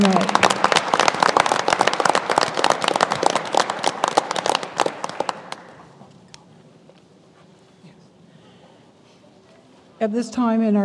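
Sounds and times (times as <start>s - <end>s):
audience applause: 0.0s - 6.1s
speech: 10.0s - 10.8s.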